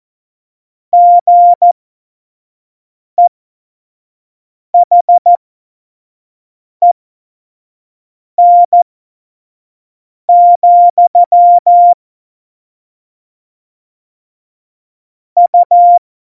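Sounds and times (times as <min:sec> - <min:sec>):
morse code beeps: 0:01.0 - 0:01.8, 0:04.8 - 0:05.3, 0:08.4 - 0:08.8, 0:10.3 - 0:12.0, 0:15.4 - 0:16.0.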